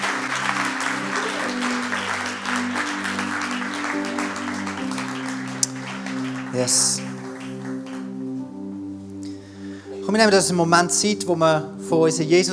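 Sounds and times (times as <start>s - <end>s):
audience applause: 0.0s - 8.6s
held low music chords: 0.0s - 12.5s
speech: 6.6s - 7.1s, 10.1s - 12.5s.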